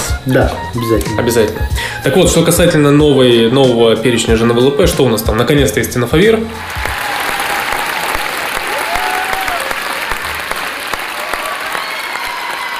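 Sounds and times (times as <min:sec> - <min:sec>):
speech: 0:00.2 - 0:07.0
inserted applause sound effect: 0:06.6 - 0:12.7.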